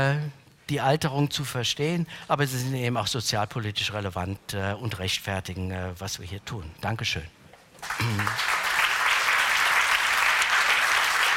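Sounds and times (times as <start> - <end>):
speech: 0.0 - 8.6
audience applause: 7.8 - 11.3.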